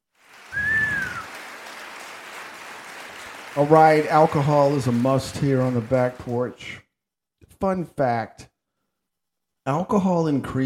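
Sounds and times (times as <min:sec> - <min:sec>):
applause: 0:00.0 - 0:06.8
speech: 0:03.6 - 0:06.8, 0:07.6 - 0:08.5, 0:09.6 - 0:10.6.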